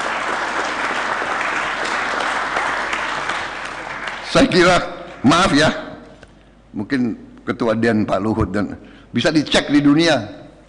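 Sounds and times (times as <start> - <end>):
audience applause: 0.0 - 5.2
speech: 4.3 - 5.8, 6.8 - 10.4.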